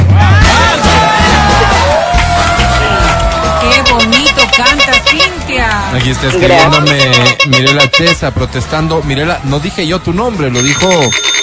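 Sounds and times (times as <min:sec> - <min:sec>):
audience cheering and applauding: 0:00.0 - 0:04.7
low rhythmic thump: 0:03.7 - 0:05.7, 0:06.6 - 0:08.4
speech: 0:06.1 - 0:11.3.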